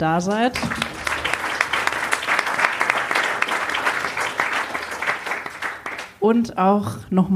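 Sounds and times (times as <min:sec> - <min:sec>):
speech: 0:00.0 - 0:01.0, 0:06.2 - 0:07.3
audience applause: 0:00.5 - 0:06.2.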